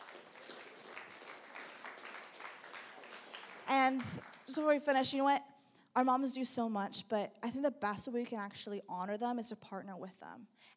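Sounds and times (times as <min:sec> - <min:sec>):
audience applause: 0:00.0 - 0:04.5
speech: 0:03.7 - 0:10.7.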